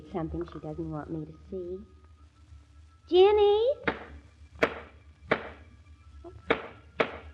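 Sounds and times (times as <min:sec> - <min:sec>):
speech: 0:00.1 - 0:02.0, 0:03.1 - 0:04.0
hammering to fix a squeaky floorboard: 0:03.9 - 0:05.6, 0:06.5 - 0:07.3.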